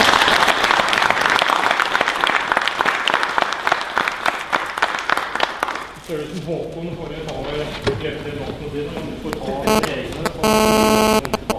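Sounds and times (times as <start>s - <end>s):
applause: 0.0s - 6.0s
speech: 6.4s - 10.8s.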